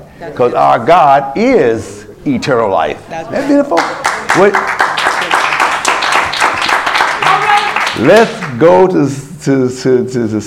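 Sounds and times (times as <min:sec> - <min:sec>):
speech: 0:00.2 - 0:04.9, 0:08.0 - 0:10.4
group of people clapping: 0:03.5 - 0:08.7.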